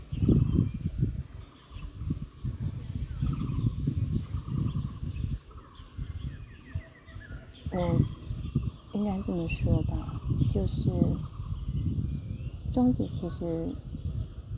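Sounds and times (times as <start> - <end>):
faint bird chirps: 0.0 - 14.2
gusty wind buffeting the microphone: 0.0 - 14.5
speech: 9.1 - 11.3, 12.8 - 13.9.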